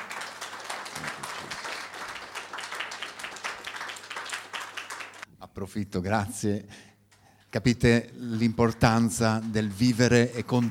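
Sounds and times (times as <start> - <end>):
audience applause: 0.0 - 5.2
speech: 5.6 - 6.9, 7.5 - 10.6.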